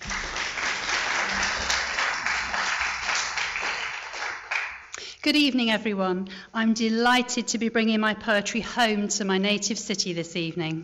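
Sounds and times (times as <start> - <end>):
audience applause at a live poetry reading: 0.0 - 4.9
speech: 5.2 - 10.8.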